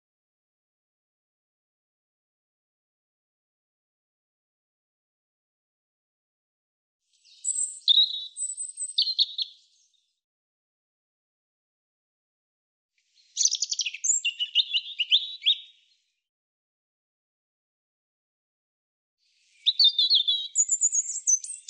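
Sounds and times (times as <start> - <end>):
European robin singing: 7.2 - 10.0, 13.1 - 16.0, 19.4 - 21.6.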